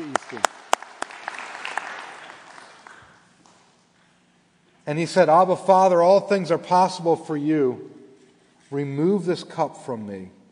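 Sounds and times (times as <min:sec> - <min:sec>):
crowd applauding with dense steady clapping: 0:00.0 - 0:03.7
speech: 0:00.3 - 0:00.5, 0:04.9 - 0:08.0, 0:08.7 - 0:10.4.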